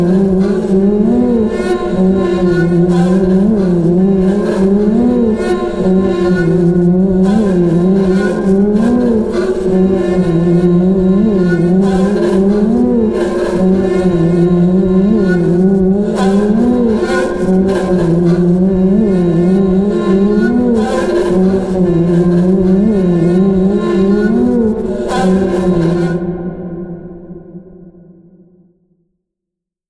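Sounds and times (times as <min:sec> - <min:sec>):
erratic high didgeridoo drone: 0:00.0 - 0:27.4.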